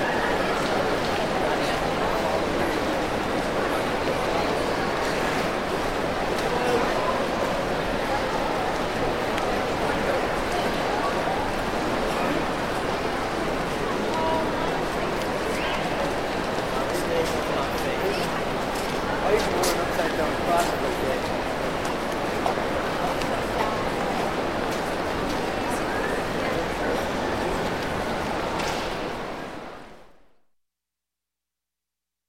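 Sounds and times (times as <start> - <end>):
large indoor shopping mall general ambience: 0.0 - 30.4.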